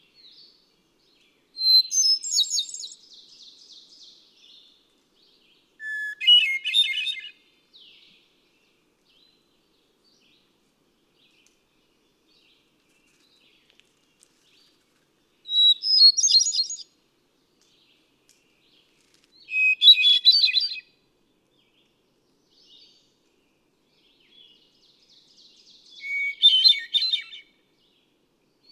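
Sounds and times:
Hermit Thrush: 0:00.0 - 0:10.5, 0:11.3 - 0:17.0, 0:17.6 - 0:28.7.

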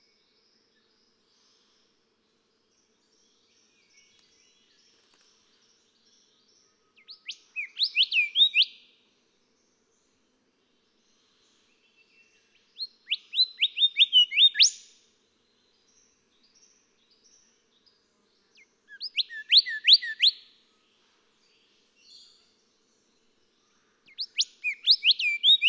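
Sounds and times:
golden whistler singing: 0:07.2 - 0:08.7, 0:13.1 - 0:14.8, 0:19.0 - 0:20.4, 0:24.1 - 0:25.6.

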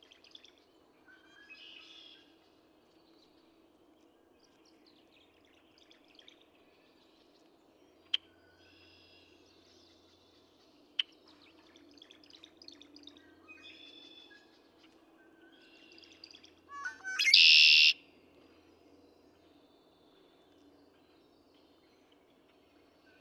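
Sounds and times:
Red-winged Blackbird singing a stutter into a raspy trill: 0:15.6 - 0:18.0.

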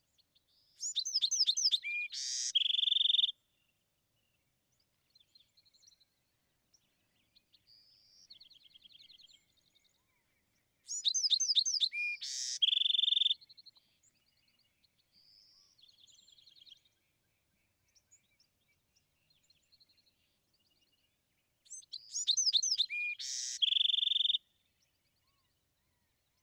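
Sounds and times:
Bewick's wren singing: 0:00.8 - 0:03.3, 0:10.9 - 0:13.4, 0:21.7 - 0:24.4.

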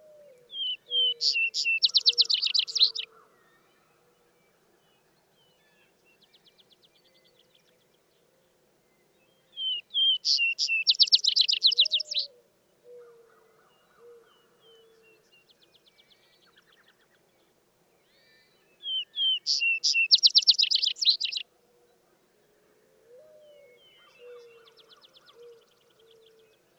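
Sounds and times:
Vesper Sparrow song of whistles and trill: 0:00.5 - 0:03.1, 0:09.6 - 0:12.3, 0:18.1 - 0:21.4.

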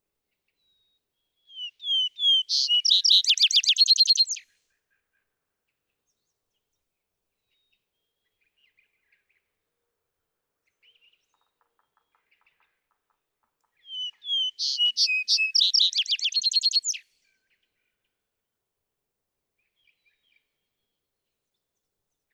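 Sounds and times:
vesper sparrow calling: 0:01.6 - 0:04.4, 0:13.9 - 0:17.0.

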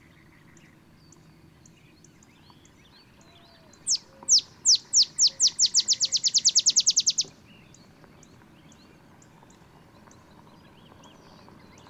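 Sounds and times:
olive sparrow singing accelerating chips: 0:01.1 - 0:07.8.

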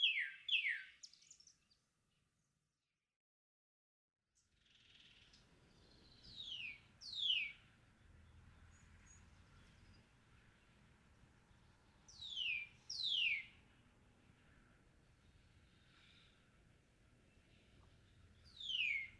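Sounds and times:
Northern Cardinal singing: 0:00.0 - 0:01.7, 0:05.0 - 0:10.8, 0:11.5 - 0:14.5, 0:17.2 - 0:19.1.

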